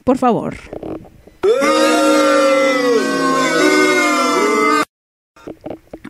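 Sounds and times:
speech: 0.0 - 0.8, 1.4 - 2.2
person booing: 1.4 - 4.9.

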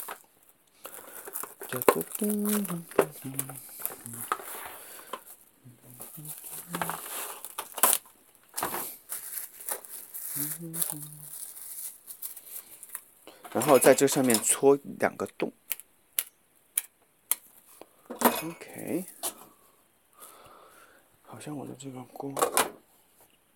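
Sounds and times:
plastic cling film crinkling over a fish plate: 0.0 - 14.4
person humming: 1.7 - 4.3, 5.6 - 7.1, 10.3 - 11.3
speech: 1.7 - 4.4, 10.4 - 11.4, 13.5 - 15.6, 18.4 - 19.2, 21.4 - 22.8.

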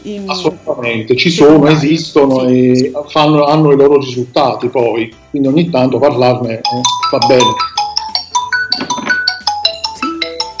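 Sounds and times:
speech: 0.0 - 7.8
alarm clock ringing with a bright electronic jingle: 6.6 - 10.5.

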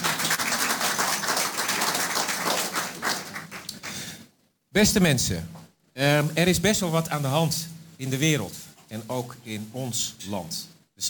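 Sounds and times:
audience applause: 0.0 - 4.1
speech: 4.8 - 11.0.

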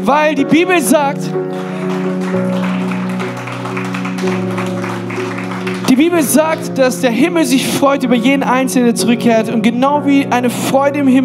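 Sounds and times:
speech: 0.0 - 2.5, 4.2 - 4.6, 6.0 - 11.2
loud sustained keyboard chords: 0.0 - 11.2
audience applause: 1.3 - 6.8.

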